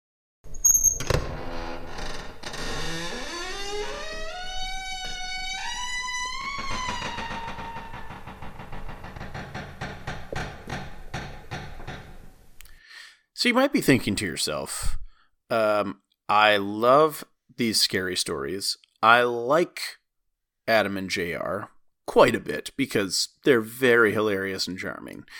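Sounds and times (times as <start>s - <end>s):
door creaking: 0.4s - 12.5s
speech: 13.4s - 20.0s, 20.7s - 25.3s.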